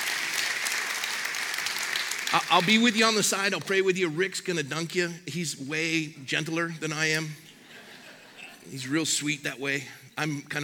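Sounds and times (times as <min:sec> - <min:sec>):
crowd applauding: 0:00.0 - 0:03.2
speech: 0:02.3 - 0:07.5, 0:08.7 - 0:10.6
laughter: 0:07.5 - 0:08.7.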